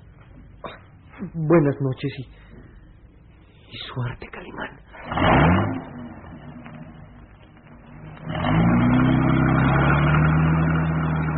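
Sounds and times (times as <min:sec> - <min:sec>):
speech: 0:01.2 - 0:02.5, 0:03.9 - 0:05.6
car accelerating along a garden path: 0:05.0 - 0:11.3.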